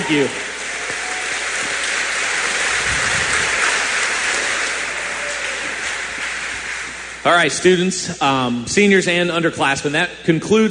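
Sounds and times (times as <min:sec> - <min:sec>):
audience applause in a gymnasium: 0:00.0 - 0:07.4
speech: 0:00.1 - 0:00.5, 0:07.2 - 0:10.6.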